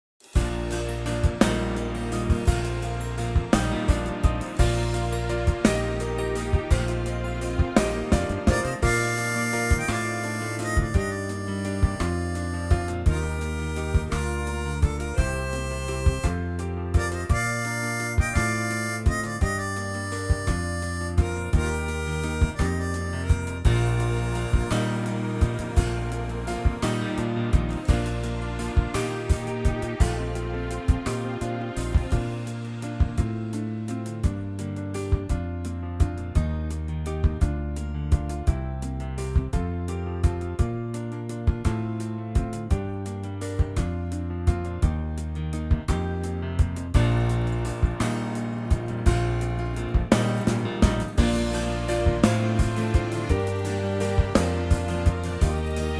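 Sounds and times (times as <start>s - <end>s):
backing track in B flat: 0.2s - 55.9s.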